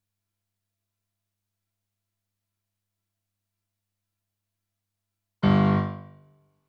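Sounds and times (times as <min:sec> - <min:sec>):
rock and roll piano: 0:05.4 - 0:06.2.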